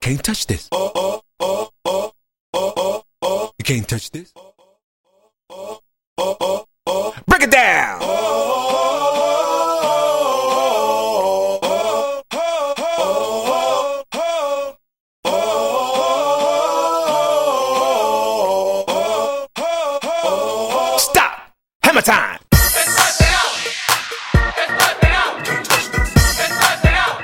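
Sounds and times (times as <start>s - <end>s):
90s mainstream a cappella vocals: 0.4s - 3.7s, 4.3s - 21.2s, 22.5s - 27.2s
party break re-drum: 22.5s - 27.2s.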